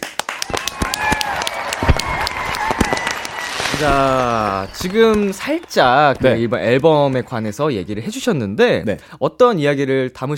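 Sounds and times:
applause from a small group: 0.0s - 8.1s
speech: 3.8s - 10.3s.

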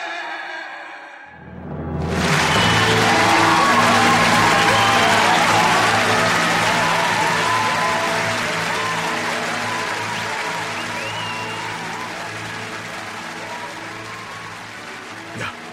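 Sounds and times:
audience applause: 2.0s - 15.7s.

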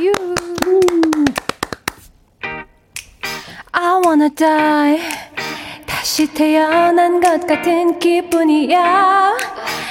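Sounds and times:
applause, hands clapping: 0.0s - 2.1s
speech: 4.1s - 5.2s, 6.0s - 9.5s.

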